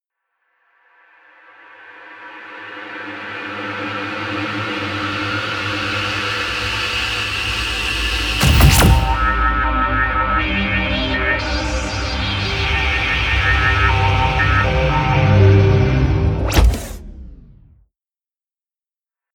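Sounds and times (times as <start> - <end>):
promo synth pad: 2.5 - 16.4.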